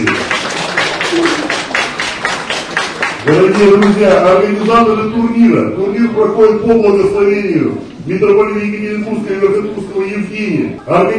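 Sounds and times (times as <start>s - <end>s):
audience applause: 0.0s - 4.7s
speech: 3.3s - 11.1s.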